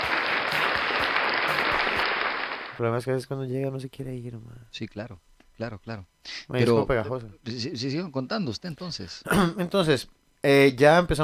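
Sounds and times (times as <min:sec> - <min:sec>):
applause sound effect: 0:00.0 - 0:02.8
speech: 0:02.8 - 0:11.2.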